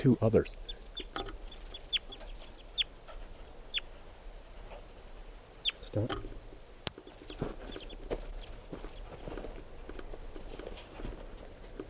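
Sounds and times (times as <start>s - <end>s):
speech: 0.0s - 1.3s, 6.0s - 6.4s
juvenile wild bird calling with high-pitched peeps: 0.4s - 9.2s.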